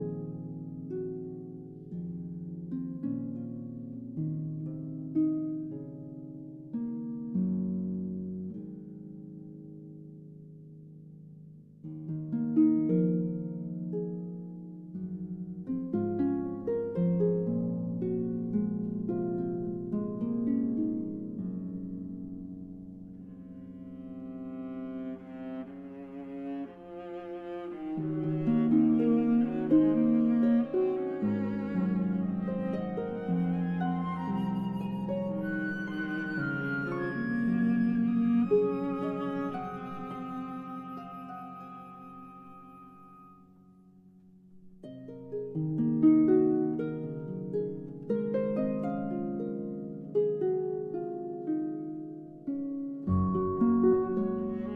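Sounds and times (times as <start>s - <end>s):
harp concerto lullaby: 0.0s - 54.7s.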